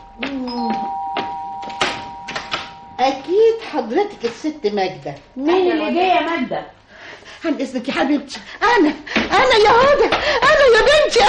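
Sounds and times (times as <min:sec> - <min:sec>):
tonal chime: 0:00.0 - 0:05.7
faint steady hum: 0:00.0 - 0:09.2
door being opened for a visitor: 0:00.2 - 0:03.0
speech: 0:03.0 - 0:06.8, 0:07.4 - 0:11.2.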